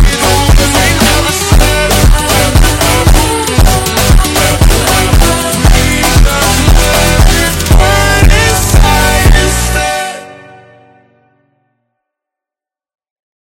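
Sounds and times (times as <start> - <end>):
super slowed funk music: 0.0 - 10.6.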